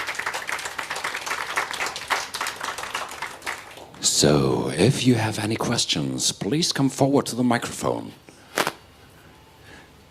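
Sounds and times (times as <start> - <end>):
audience applause: 0.0 - 4.0
speech: 4.1 - 8.2.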